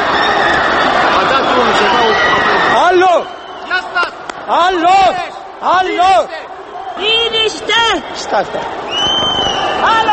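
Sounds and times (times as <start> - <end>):
huge crowd shouting at a 1989 Bucharest rally: 0.0 - 10.1
speech: 8.4 - 8.8.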